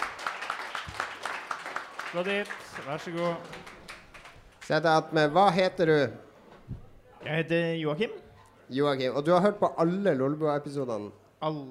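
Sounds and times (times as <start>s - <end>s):
audience applause: 0.0s - 4.7s
speech: 2.1s - 3.8s, 4.7s - 6.3s, 7.2s - 11.6s.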